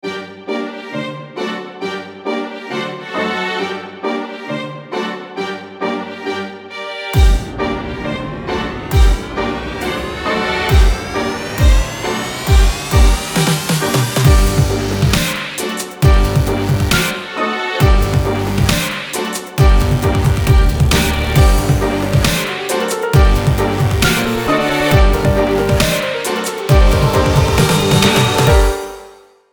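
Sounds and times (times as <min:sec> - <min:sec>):
strings: 0:00.0 - 0:29.4.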